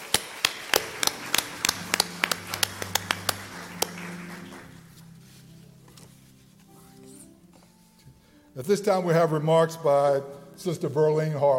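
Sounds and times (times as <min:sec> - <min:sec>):
scattered audience hand claps: 0:00.0 - 0:04.8
speech: 0:08.6 - 0:11.5.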